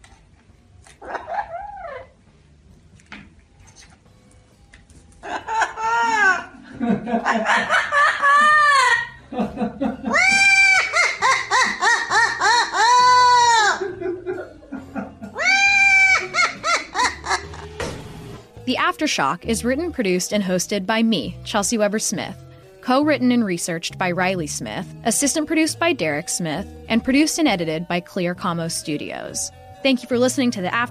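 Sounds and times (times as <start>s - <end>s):
parrot cackling wildly: 0.8s - 2.2s, 5.2s - 6.6s, 7.2s - 9.3s, 10.0s - 17.7s
speech: 19.0s - 30.9s.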